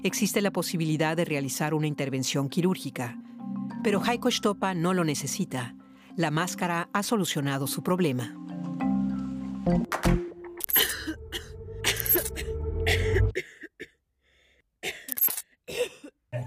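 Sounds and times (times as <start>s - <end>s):
speech: 0.0s - 8.9s, 9.7s - 10.7s
violent whooping cough fit: 10.8s - 14.0s, 14.8s - 16.4s.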